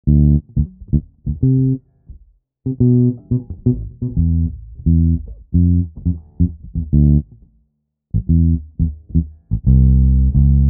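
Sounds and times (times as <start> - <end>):
bass: 0.0 - 10.6.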